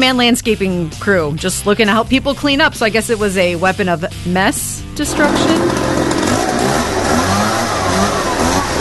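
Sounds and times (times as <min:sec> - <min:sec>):
speech: 0:00.0 - 0:05.9
leaf blower engine roaring: 0:05.0 - 0:08.7.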